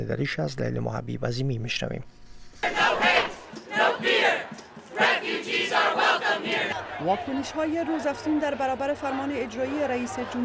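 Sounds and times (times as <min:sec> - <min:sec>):
speech: 0:00.0 - 0:02.9, 0:05.5 - 0:10.4
protest crowd chanting slogans: 0:02.6 - 0:10.4.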